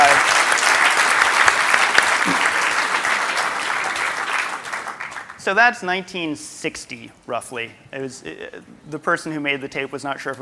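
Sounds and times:
round of applause: 0:00.0 - 0:05.4
speech: 0:05.5 - 0:10.3.

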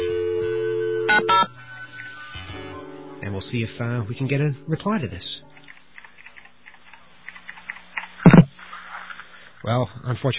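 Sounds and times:
dialing tones: 0:00.0 - 0:01.5
speech: 0:03.3 - 0:05.5, 0:09.6 - 0:10.3.

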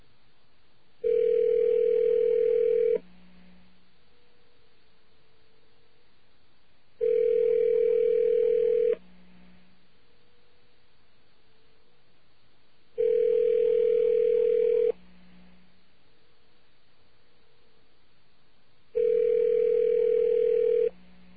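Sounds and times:
telephone ringing on the line: 0:01.0 - 0:03.0, 0:07.0 - 0:09.0, 0:13.0 - 0:15.0, 0:19.0 - 0:21.0.

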